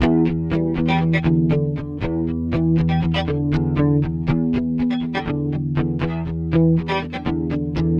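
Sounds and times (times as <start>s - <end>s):
guitars: 0.0s - 7.9s.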